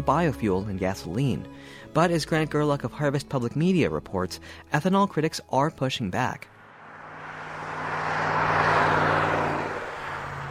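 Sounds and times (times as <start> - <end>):
speech: 0.0 - 6.5
semi truck passing on Highway 20 near Atkinson, Nebraska: 6.5 - 10.4
low engine drone: 6.6 - 10.4.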